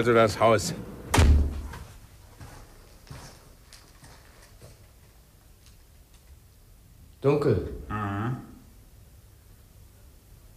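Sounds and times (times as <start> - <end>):
speech: 0.0 - 0.9, 7.2 - 8.1
door opening and closing: 1.0 - 1.9.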